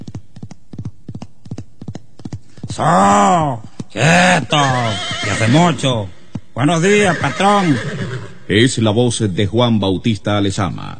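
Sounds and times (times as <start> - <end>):
horse hoofbeats galloping on the Barinas plains of Venezuela: 0.0 - 8.3
speech: 2.8 - 10.9.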